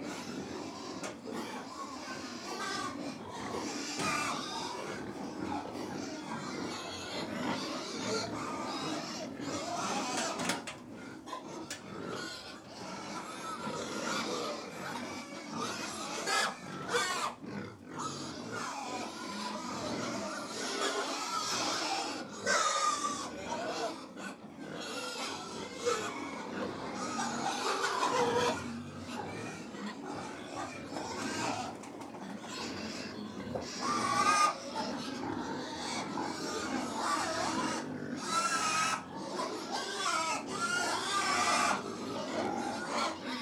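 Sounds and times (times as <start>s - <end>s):
pig herd grunting and feeding: 0.0s - 43.4s.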